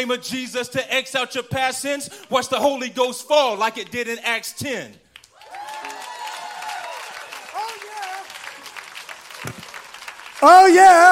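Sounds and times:
speech: 0:00.0 - 0:05.0, 0:10.4 - 0:11.1
audience applause: 0:05.3 - 0:11.1.

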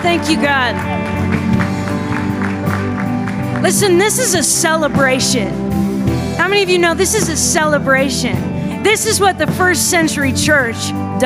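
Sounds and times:
speech: 0:00.0 - 0:01.5, 0:03.6 - 0:05.8, 0:06.5 - 0:11.2
audience clapping in a steady rhythm: 0:00.0 - 0:05.1
sustained bright music: 0:00.0 - 0:11.2.

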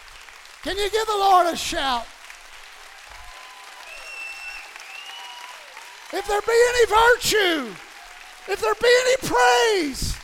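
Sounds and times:
audience applauding in praise: 0:00.0 - 0:10.2
speech: 0:00.6 - 0:02.1, 0:06.1 - 0:07.8, 0:08.5 - 0:10.2.

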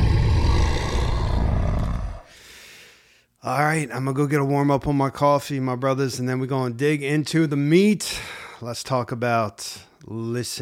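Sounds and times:
grizzly bear growl: 0:00.0 - 0:02.3
speech: 0:03.4 - 0:10.6.

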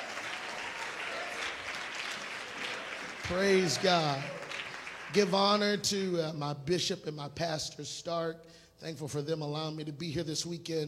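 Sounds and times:
audience clapping: 0:00.0 - 0:05.8
speech: 0:03.3 - 0:04.4, 0:05.1 - 0:10.8.

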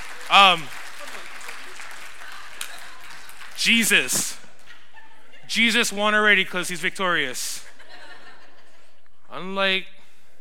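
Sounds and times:
audience applause: 0:00.0 - 0:04.1
speech: 0:00.3 - 0:00.8, 0:03.6 - 0:04.4, 0:05.5 - 0:07.7, 0:09.3 - 0:10.0
laughter: 0:03.8 - 0:05.8, 0:07.4 - 0:09.2.

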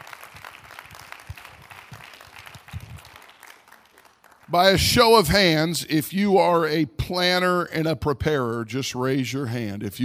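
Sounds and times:
audience clapping hands: 0:00.0 - 0:05.5
speech: 0:04.5 - 0:10.0.

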